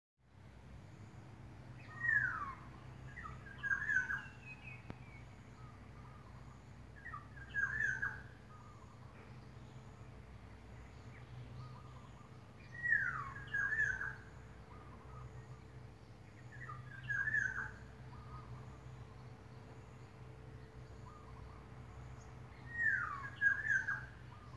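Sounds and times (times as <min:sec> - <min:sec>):
birds: 0:00.6 - 0:24.5.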